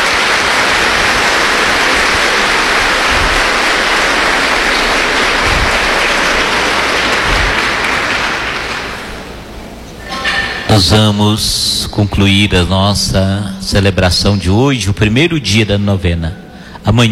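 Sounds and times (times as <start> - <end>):
audience applause: 0.0 - 9.6
speech: 10.7 - 17.0.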